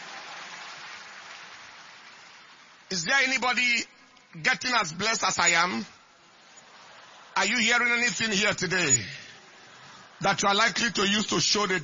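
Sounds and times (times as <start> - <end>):
crowd clapping: 0.0 - 2.9
speech: 2.9 - 5.9, 7.4 - 9.2, 10.2 - 11.8.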